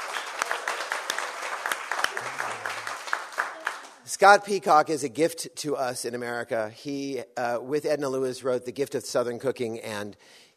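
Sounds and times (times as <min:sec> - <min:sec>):
audience applauding a guest cook: 0:00.0 - 0:04.1
sharp individual claps: 0:00.0 - 0:04.1
speech: 0:04.1 - 0:10.5.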